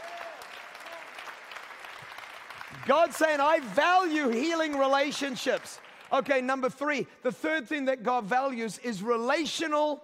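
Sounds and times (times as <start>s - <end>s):
audience clapping: 0.0s - 6.7s
speech: 2.7s - 10.0s.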